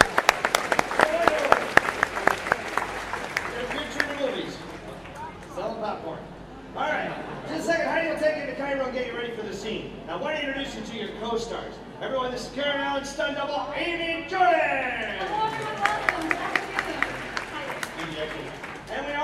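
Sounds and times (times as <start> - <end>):
audience applauding a performer taking a bow: 0.0 - 5.5, 15.1 - 19.2
voices and chatter: 2.1 - 19.2.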